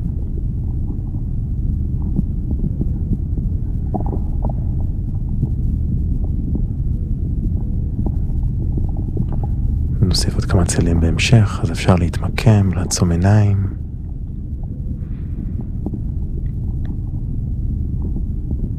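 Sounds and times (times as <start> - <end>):
human stomach gurgling: 0.0 - 12.5, 13.7 - 18.7
speech: 10.6 - 13.8.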